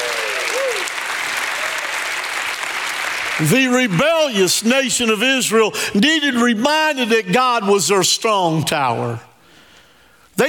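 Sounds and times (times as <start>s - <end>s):
rising vocal whoop: 0.0s - 0.9s
audience clapping hands: 0.0s - 4.6s
speech: 3.4s - 9.3s.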